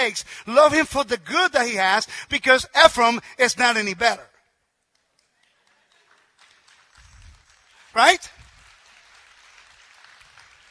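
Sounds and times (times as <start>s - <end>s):
speech: 0.0s - 4.3s, 7.9s - 8.4s
scattered claps: 4.8s - 10.6s.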